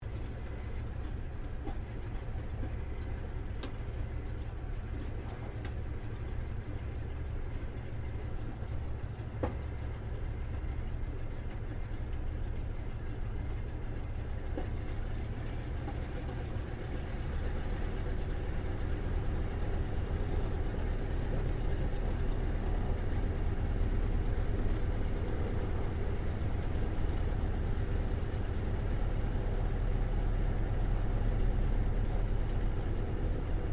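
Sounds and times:
CA-28 Ceres aircraft idling heard from the interior: 0.0s - 33.7s.

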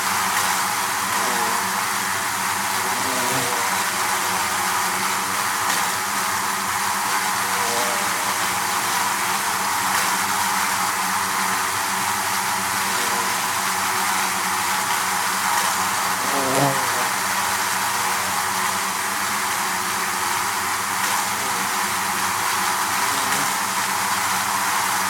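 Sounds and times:
bees buzzing in a hive: 0.0s - 25.0s.

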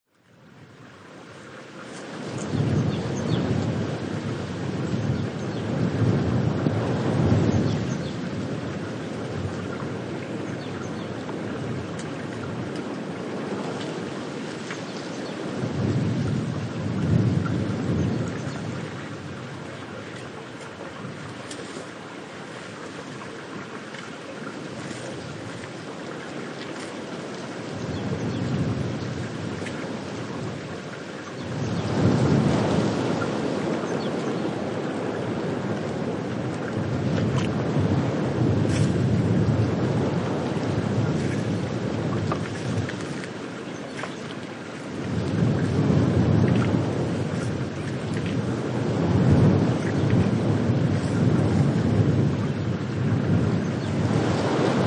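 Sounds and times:
stream trickling: 0.1s - 54.8s
blustery wind blowing through forest trees: 0.4s - 54.8s.

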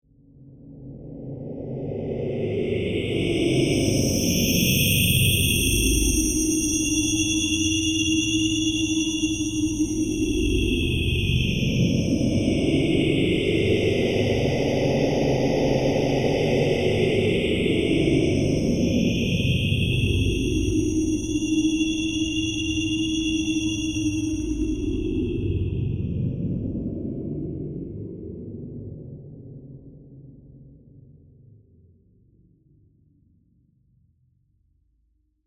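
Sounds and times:
evil alien presence movement: 1.1s - 28.4s.

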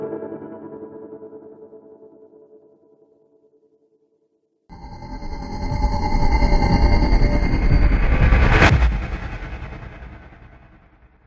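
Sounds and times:
cinematic riser: 4.7s - 11.1s.

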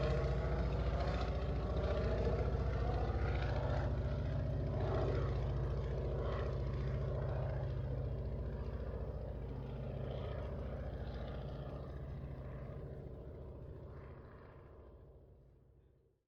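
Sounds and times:
replica 1916 Sopwith Pup airplane passing: 0.0s - 15.0s.

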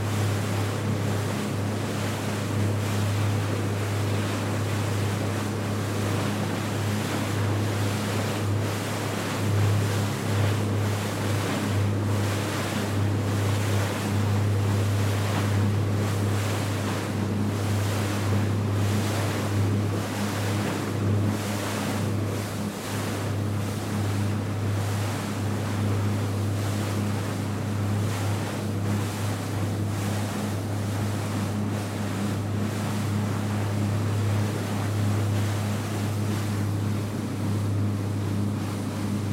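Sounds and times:
yacht idling slow and accelerating fast: 0.0s - 39.3s.

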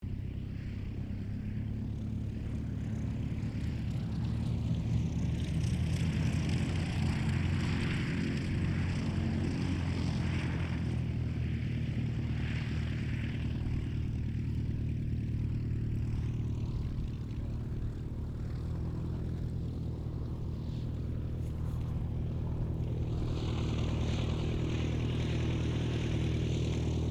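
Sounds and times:
Ryan STM-S2 aircraft taxiing: 0.0s - 27.0s.

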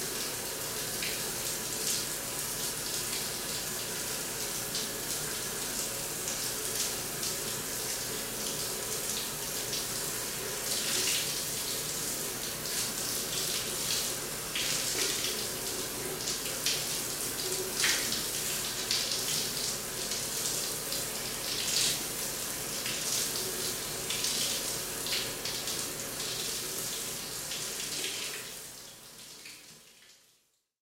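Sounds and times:
locker room shower running: 0.0s - 30.7s.

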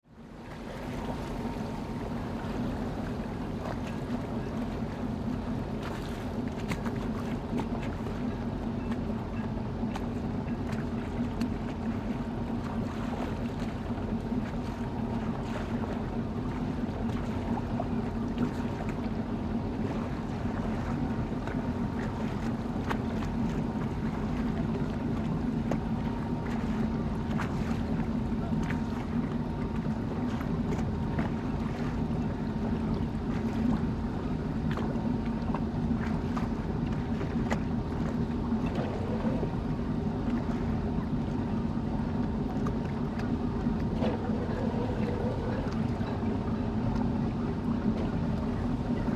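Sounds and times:
yacht idling at a dock: 0.0s - 49.1s.

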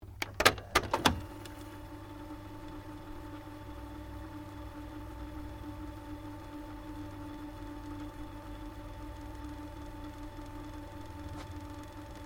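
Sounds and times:
Akai stereo mini tape deck rewind stopping: 0.2s - 12.2s.

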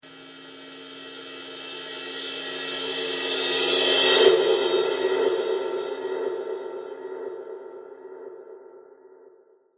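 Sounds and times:
reverse cymbal whoosh: 0.2s - 7.6s.

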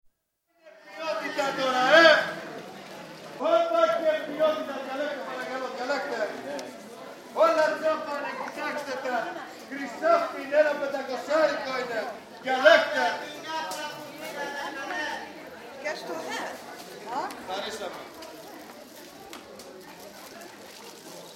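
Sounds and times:
stallholders shouting at clothing market in Greece: 0.6s - 2.7s, 3.4s - 6.5s, 7.4s - 15.4s.

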